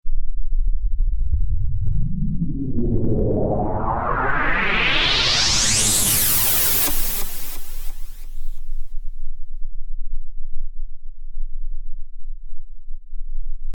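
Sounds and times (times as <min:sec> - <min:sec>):
delayed pink noise: 0:01.1 - 0:08.8.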